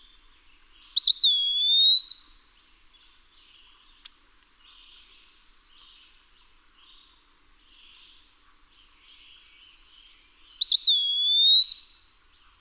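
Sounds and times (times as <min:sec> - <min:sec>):
Eastern wood-pewee whistled pee-a-wee call: 0:01.0 - 0:02.4, 0:10.6 - 0:12.1.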